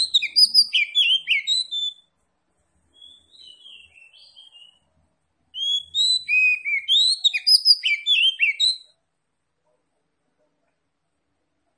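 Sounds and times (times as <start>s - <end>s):
Oriental magpie-robin singing whistles and warbling notes: 0.0s - 2.1s, 2.9s - 4.9s, 5.5s - 9.0s.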